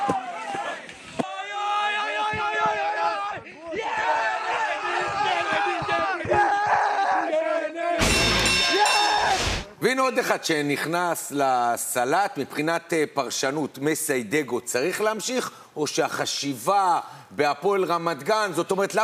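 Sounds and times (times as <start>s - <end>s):
football stadium crowd chanting: 0.2s - 9.4s
speech: 9.9s - 19.0s.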